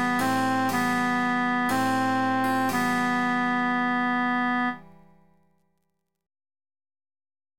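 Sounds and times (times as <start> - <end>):
emphasized alto voice singing: 0.1 - 4.9.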